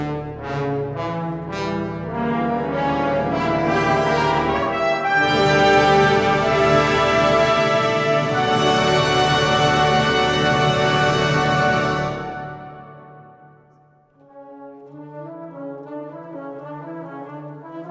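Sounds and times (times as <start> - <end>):
modern rhythmic fanfare: 0.2 - 13.5.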